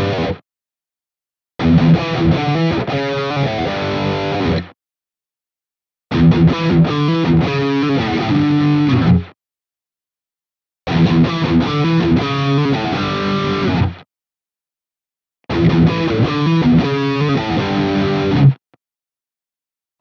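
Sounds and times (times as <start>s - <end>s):
Ibanez AR520HFM guitar rhythm riff in all pickup positions: 0.0s - 0.4s, 1.6s - 4.8s, 6.1s - 9.4s, 10.9s - 14.0s, 15.5s - 18.6s.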